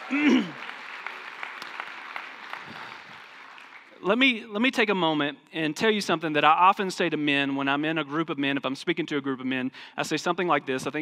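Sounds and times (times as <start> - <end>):
church congregation applauding dads on Father's Day: 0.0 - 4.2
speech: 0.1 - 0.7, 4.1 - 11.0.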